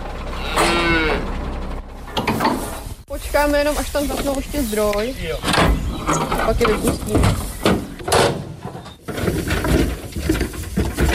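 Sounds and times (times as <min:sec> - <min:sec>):
steady rumble: 0:00.0 - 0:11.1
Scottish Highland cattle lowing inside a truck: 0:00.3 - 0:01.4
speech: 0:03.2 - 0:07.5.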